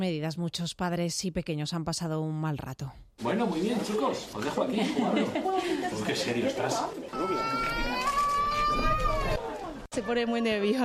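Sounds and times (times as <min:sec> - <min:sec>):
speech: 0:00.0 - 0:08.0, 0:10.0 - 0:10.8
laughter: 0:04.5 - 0:07.6
young child crying on the first day at a public nursery school: 0:07.1 - 0:09.5.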